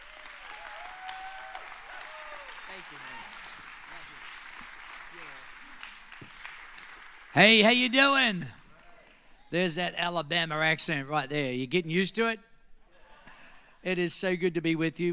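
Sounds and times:
congregation applauding a guest pastor at a church service: 0:00.0 - 0:09.2
speech: 0:02.8 - 0:05.9, 0:07.3 - 0:08.6, 0:09.5 - 0:12.5, 0:13.8 - 0:15.1.

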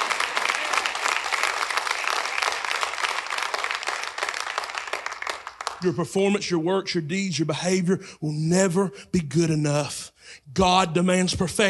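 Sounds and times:
audience clapping: 0:00.0 - 0:06.1
speech: 0:05.8 - 0:11.6.

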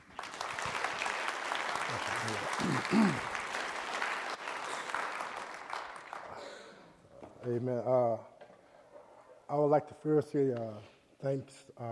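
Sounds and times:
audience applause welcoming a preacher: 0:00.0 - 0:06.8
speech: 0:01.9 - 0:03.3, 0:07.4 - 0:08.3, 0:09.5 - 0:11.8.

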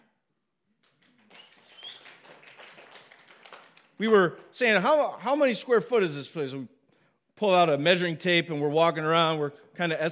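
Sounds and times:
audience clapping: 0:00.8 - 0:04.8
speech: 0:04.0 - 0:06.8, 0:07.4 - 0:10.1.

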